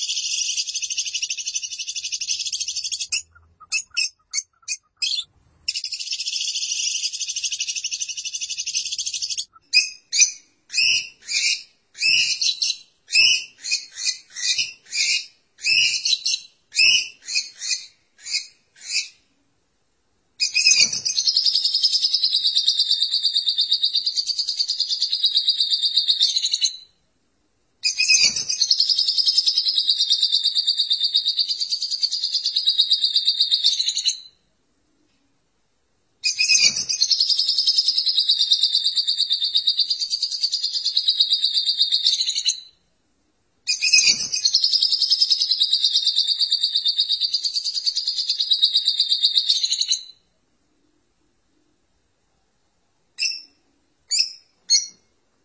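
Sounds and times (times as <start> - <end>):
lovebird twittering chatter: 0.0 - 19.2, 20.4 - 26.8, 27.8 - 34.3, 36.2 - 42.7, 43.7 - 50.1, 53.2 - 55.0.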